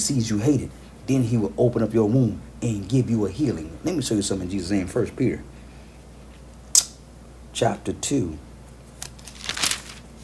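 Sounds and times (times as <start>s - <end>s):
speech: 0.0s - 5.6s, 7.6s - 8.5s
pages of a Bible being turned: 8.9s - 10.2s.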